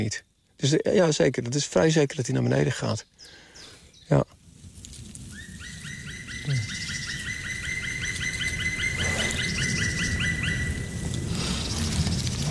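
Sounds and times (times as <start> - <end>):
speech: 0.0 - 3.4, 4.1 - 4.4
hiss: 0.0 - 12.4
bird courtship call near a nest: 2.0 - 4.2, 5.3 - 12.4.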